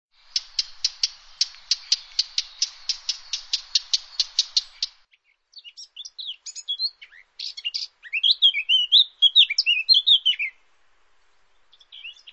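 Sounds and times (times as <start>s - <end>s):
faint bird chirps: 0.2s - 10.6s, 11.4s - 12.3s.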